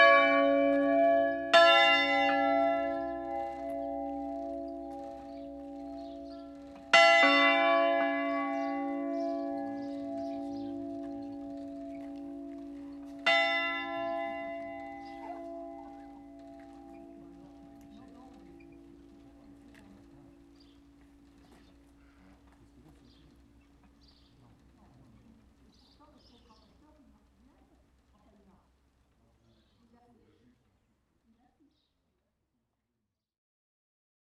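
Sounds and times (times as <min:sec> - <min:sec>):
bells of La Villedieu ringing: 0:00.0 - 0:23.9.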